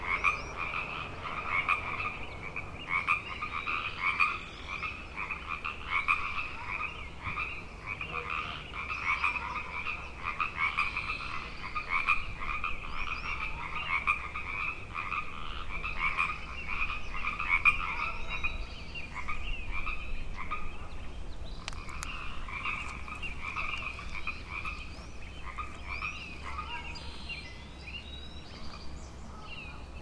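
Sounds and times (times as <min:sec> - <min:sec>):
frog chorus trilling: 0:00.0 - 0:20.9, 0:21.6 - 0:29.9.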